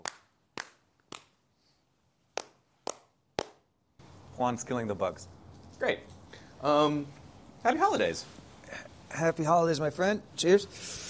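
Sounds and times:
sharp hand claps for audio sync: 0:00.0 - 0:01.4, 0:02.3 - 0:03.7
speech: 0:04.4 - 0:11.0.

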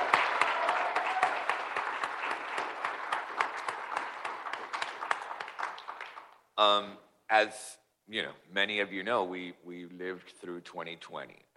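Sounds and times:
audience round of applause: 0:00.0 - 0:06.4
speech: 0:06.6 - 0:11.5.

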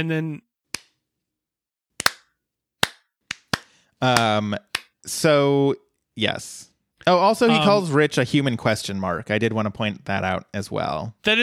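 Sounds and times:
speech: 0:00.0 - 0:00.5, 0:04.0 - 0:11.4
slow hand claps: 0:02.0 - 0:05.0.

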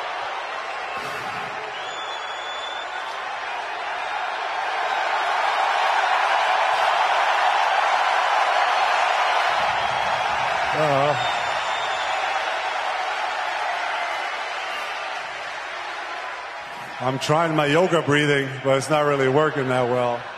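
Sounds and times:
loud arena crowd screaming and cheering: 0:00.0 - 0:20.3
speech: 0:17.1 - 0:20.3.

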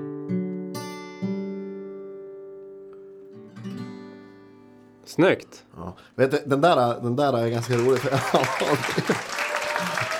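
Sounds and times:
speech: 0:05.1 - 0:09.4
audience applause: 0:07.5 - 0:10.1
laughter: 0:07.7 - 0:10.1.

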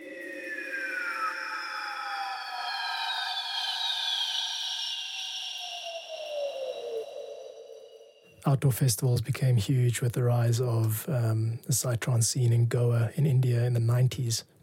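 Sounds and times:
synth sound like screeching bird of prey: 0:00.0 - 0:08.4
speech: 0:08.5 - 0:14.6.

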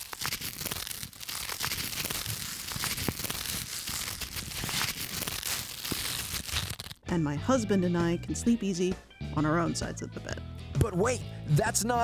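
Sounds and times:
Tearaway Duvet fabric ripping: 0:00.0 - 0:07.0
speech: 0:07.1 - 0:12.0.

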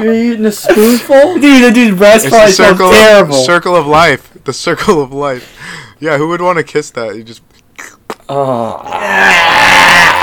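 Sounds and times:
speech: 0:00.0 - 0:07.5, 0:08.3 - 0:10.2
person burping: 0:07.8 - 0:10.2.

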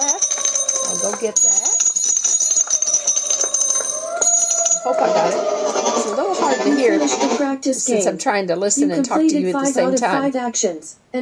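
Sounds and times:
fire truck alarm in audio game: 0:00.0 - 0:06.6
speech: 0:00.9 - 0:01.6, 0:04.8 - 0:11.2.

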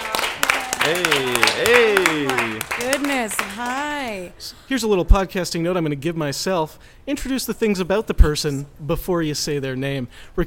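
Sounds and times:
scattered audience clapping: 0:00.0 - 0:04.2
speech: 0:00.8 - 0:10.4.

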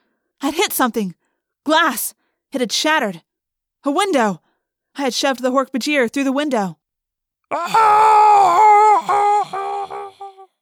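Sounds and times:
speech: 0:00.4 - 0:04.4, 0:05.0 - 0:06.8, 0:07.5 - 0:09.1
creature's dying cry as it falls: 0:07.5 - 0:10.5.

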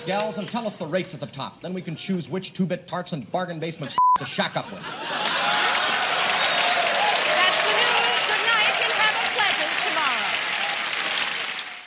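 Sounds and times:
studio audience clapping: 0:00.0 - 0:01.2, 0:05.0 - 0:11.8
speech: 0:00.0 - 0:05.5
laughter: 0:04.2 - 0:06.7
studio audience cheering and whooping: 0:05.0 - 0:11.8.

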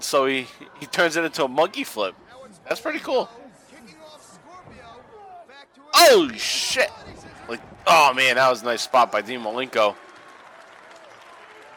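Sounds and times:
speech: 0:00.1 - 0:03.4, 0:06.0 - 0:10.0
crowd standing ovation: 0:06.0 - 0:06.8, 0:07.5 - 0:11.7.

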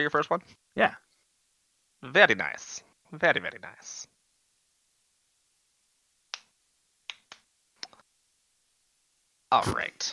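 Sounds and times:
speech: 0:00.0 - 0:01.0, 0:02.0 - 0:04.1, 0:09.5 - 0:10.1
rhythmic hand clapping: 0:06.3 - 0:07.5.

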